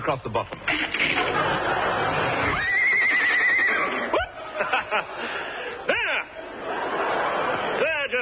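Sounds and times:
speech: 0:00.0 - 0:02.0
laughter: 0:00.7 - 0:08.2
horse whinnying: 0:02.4 - 0:04.2.

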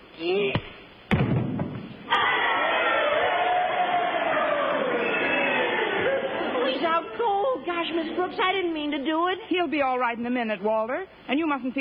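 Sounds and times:
speech: 0:00.2 - 0:00.5, 0:08.2 - 0:11.7
crowd cheering at a fight: 0:02.0 - 0:08.5.

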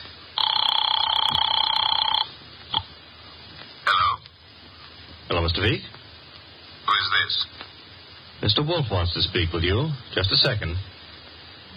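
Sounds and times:
telephone ringing: 0:00.4 - 0:02.9
speech: 0:05.5 - 0:06.0, 0:07.0 - 0:07.6, 0:08.4 - 0:10.9.

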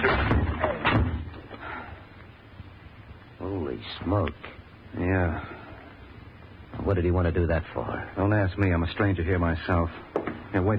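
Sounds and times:
door being forced open with shoulder: 0:00.0 - 0:01.4
speech: 0:04.0 - 0:05.6, 0:06.8 - 0:10.7.

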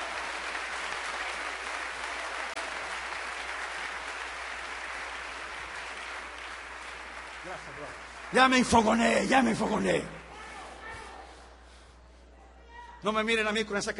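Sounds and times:
audience applauding: 0:00.0 - 0:10.2
speech: 0:07.5 - 0:10.2, 0:13.0 - 0:13.9.

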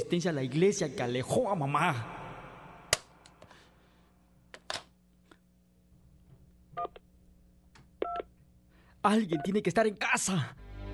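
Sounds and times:
speech: 0:00.1 - 0:02.2, 0:09.0 - 0:10.6
touch-tone keypad beeps dialing a telephone number: 0:08.0 - 0:08.2.

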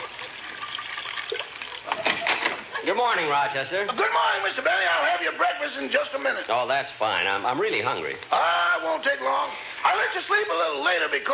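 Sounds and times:
cognac being poured into a dish: 0:00.0 - 0:02.0
speech: 0:02.8 - 0:11.3.

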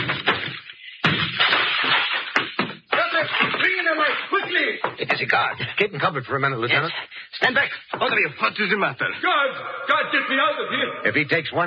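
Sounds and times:
door being broken down: 0:00.0 - 0:05.0
speech: 0:05.0 - 0:11.6.

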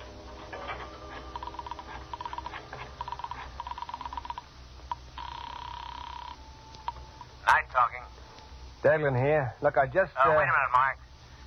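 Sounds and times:
telephone ringing tone on the line: 0:01.3 - 0:07.1
speech: 0:08.8 - 0:11.0.

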